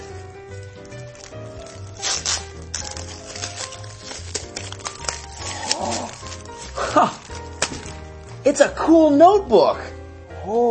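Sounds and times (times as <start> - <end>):
wrapping paper crinkling and tearing as a gift is unwrapped: 0.8 - 8.4
speech: 8.5 - 10.6.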